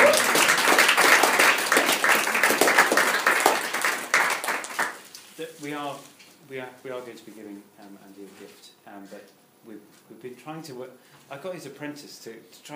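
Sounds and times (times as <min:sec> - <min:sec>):
audience applause and clapping: 0:00.0 - 0:05.0
speech: 0:05.7 - 0:12.7.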